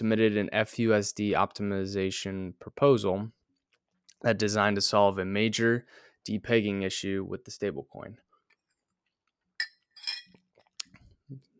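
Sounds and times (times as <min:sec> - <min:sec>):
speech: 0:00.0 - 0:03.4, 0:04.2 - 0:08.2
coffee cup clinking: 0:09.6 - 0:10.4.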